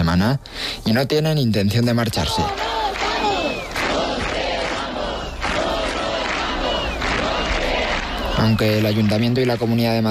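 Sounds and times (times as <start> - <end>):
speech: 0.2 - 2.7, 8.4 - 10.0
protest crowd chanting in city square: 2.2 - 9.1.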